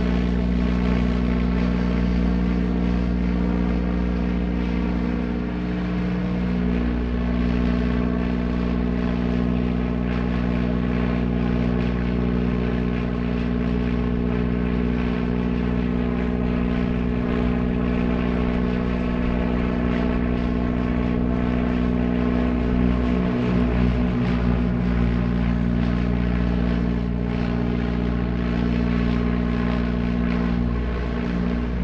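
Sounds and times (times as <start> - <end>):
propeller plane engine high and steady: 0.0 - 31.8.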